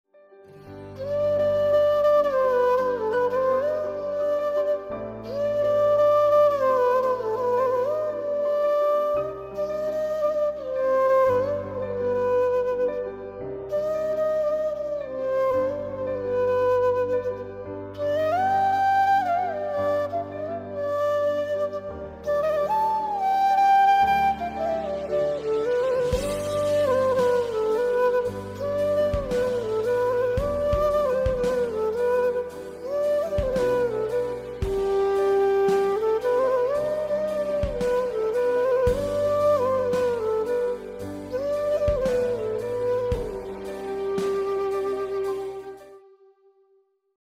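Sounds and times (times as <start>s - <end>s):
flute: 0.2s - 46.7s.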